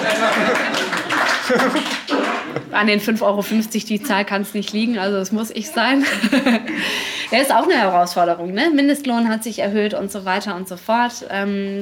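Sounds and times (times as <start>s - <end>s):
audience clapping: 0.0s - 2.8s
audience laughter: 0.0s - 2.8s, 5.8s - 6.8s
crowd voices: 0.0s - 4.3s
speech: 2.8s - 11.8s.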